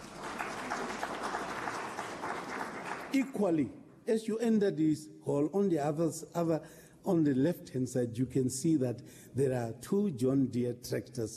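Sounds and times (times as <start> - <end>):
round of applause in a hall: 0.0 - 3.5
speech: 3.1 - 11.3.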